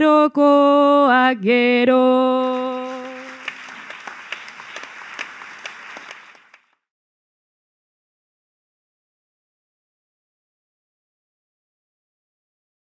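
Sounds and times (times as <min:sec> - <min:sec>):
person singing a bertso greeting verse: 0:00.0 - 0:03.9.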